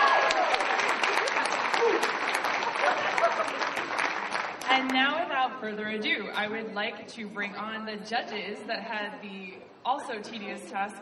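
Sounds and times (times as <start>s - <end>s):
crowd clapping: 0.0s - 5.0s
speech: 5.6s - 10.9s.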